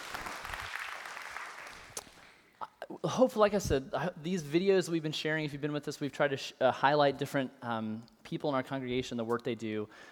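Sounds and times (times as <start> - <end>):
audience applause: 0.0 - 2.0
speech: 2.9 - 10.1.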